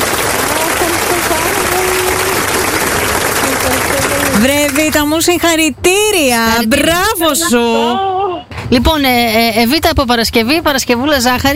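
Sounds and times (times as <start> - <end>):
applause: 0.0 - 5.1
speech: 4.4 - 11.5.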